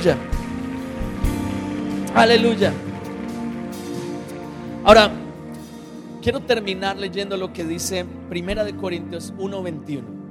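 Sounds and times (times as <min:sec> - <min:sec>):
speech: 0:00.0 - 0:00.3, 0:02.2 - 0:02.9, 0:04.8 - 0:05.2, 0:06.2 - 0:10.2
audience clapping: 0:00.0 - 0:04.8.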